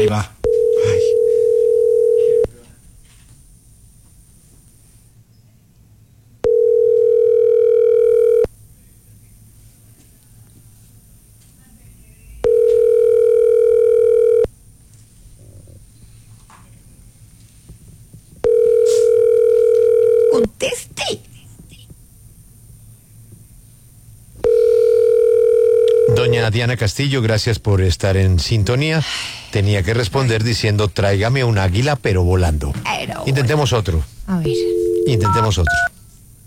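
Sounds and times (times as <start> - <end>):
speech: 0.0 - 0.4, 26.6 - 35.9
telephone line ringing during call transfer: 0.5 - 2.5, 6.4 - 8.5, 12.4 - 14.5, 18.4 - 20.4, 24.4 - 26.4, 34.6 - 35.9.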